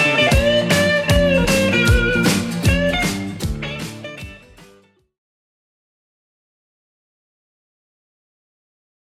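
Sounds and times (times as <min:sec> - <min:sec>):
70s Redrum drum machine beat: 0:00.0 - 0:04.7.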